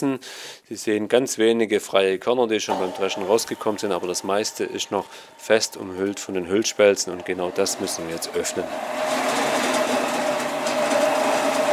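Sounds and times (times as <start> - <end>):
speech: 0.0 - 9.4
grain dehuller with rubber rollers husking emmer whirring: 2.7 - 11.7.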